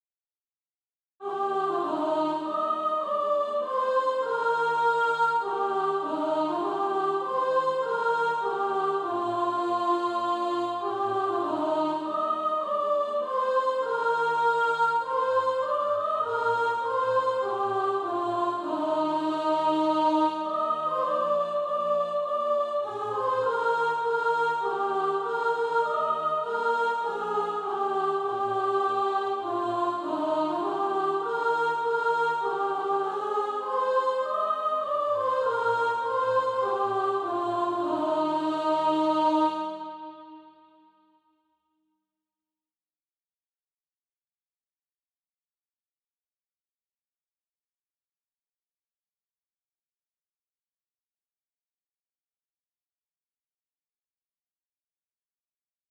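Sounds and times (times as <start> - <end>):
soprano singing: 1.2 - 40.5.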